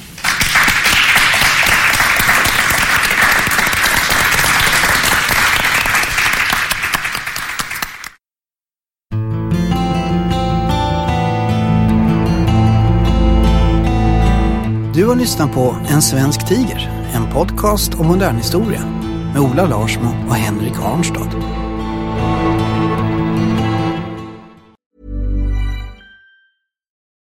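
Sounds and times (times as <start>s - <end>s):
crowd applause: 0.0s - 8.2s
music: 9.1s - 26.6s
speech: 15.1s - 21.6s.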